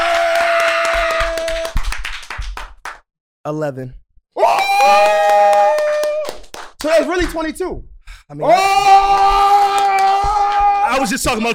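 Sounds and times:
clapping: 0.0s - 3.0s, 4.5s - 7.5s, 9.0s - 11.5s
speech: 3.4s - 5.2s, 6.8s - 9.5s, 10.9s - 11.5s.

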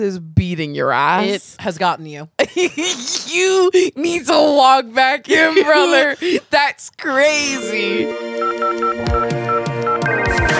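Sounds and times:
speech: 0.0s - 9.4s
electronic telephone tones as a call is dialed: 8.4s - 10.3s.

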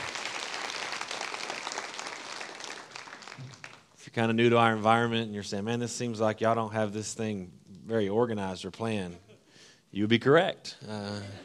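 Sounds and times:
crowd applauding: 0.0s - 4.0s
speech: 4.2s - 9.2s, 9.9s - 11.4s.

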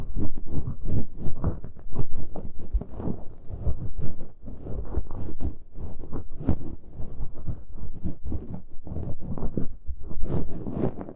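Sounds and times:
ear picking muffled scratching and rubbing: 0.0s - 11.1s.

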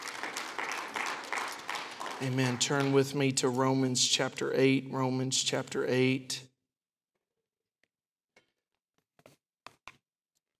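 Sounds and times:
audience clapping hands in praise: 0.0s - 5.6s
speech: 2.2s - 6.5s.

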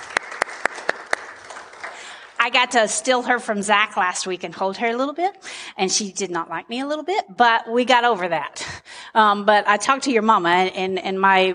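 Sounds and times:
audience applause hand claps: 0.0s - 2.4s
speech: 2.4s - 11.5s.

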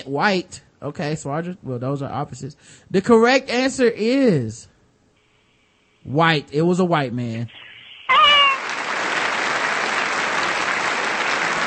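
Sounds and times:
speech: 0.0s - 4.7s, 6.0s - 8.2s
high wavering cry: 7.5s - 8.8s
crowd applause sound effect: 8.1s - 11.6s.

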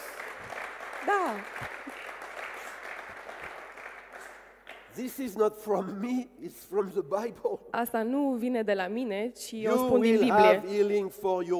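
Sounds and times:
audience applause: 0.0s - 5.3s
speech: 1.0s - 1.8s, 5.0s - 11.5s.

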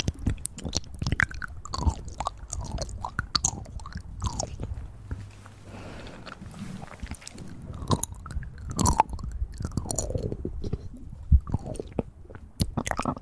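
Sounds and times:
wet clicking chewing-like mouth sounds: 0.0s - 5.2s, 6.1s - 13.2s
soft airy breath: 4.7s - 8.6s.

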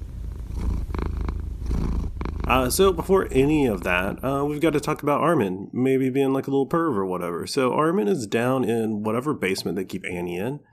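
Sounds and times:
cat purring on a person's lap: 0.0s - 5.5s
speech: 2.5s - 10.7s.

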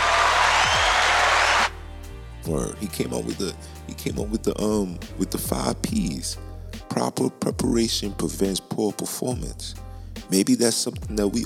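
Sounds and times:
applause from a small group: 0.0s - 1.7s
speech: 2.5s - 11.4s.

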